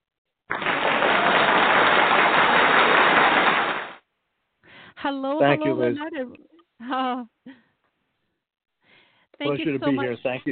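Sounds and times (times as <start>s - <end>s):
audience applause: 0.5s - 4.0s
speech: 5.0s - 7.6s, 9.4s - 10.5s.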